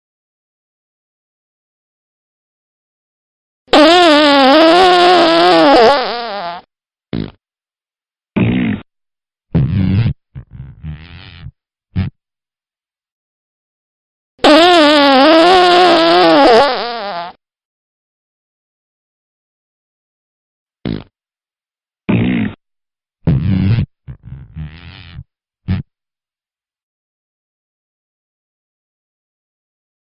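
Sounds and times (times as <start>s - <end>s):
fart: 3.7s - 7.4s, 8.4s - 8.9s, 9.5s - 12.2s, 14.4s - 17.4s, 20.8s - 21.2s, 22.1s - 22.6s, 23.2s - 25.9s.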